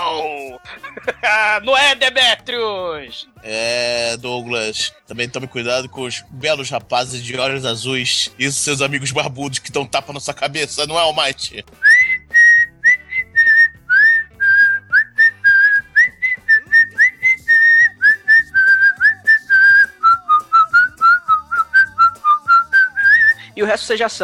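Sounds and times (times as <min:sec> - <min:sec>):
laughter: 0:00.0 - 0:01.7
speech: 0:00.6 - 0:12.0, 0:23.6 - 0:24.2
person whistling a lively tune: 0:11.8 - 0:23.5.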